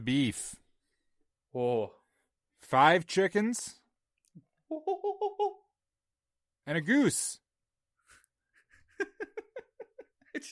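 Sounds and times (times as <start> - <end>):
speech: 0.0 - 0.6, 1.5 - 2.0, 2.6 - 3.8, 4.7 - 5.6, 6.7 - 7.4, 10.4 - 10.5
person imitating a monkey: 4.7 - 5.7
laughter: 8.6 - 10.5.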